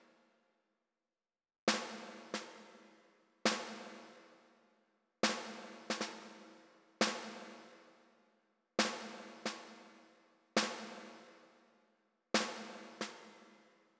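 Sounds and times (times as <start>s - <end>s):
snare drum: 1.7s - 2.9s, 3.5s - 4.2s, 5.2s - 7.8s, 8.8s - 10.0s, 10.6s - 11.3s, 12.4s - 13.5s.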